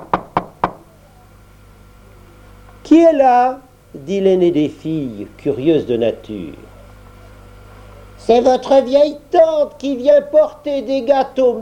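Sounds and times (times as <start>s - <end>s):
knocking on a door: 0.0s - 0.8s
speech: 2.8s - 6.7s, 8.2s - 11.5s.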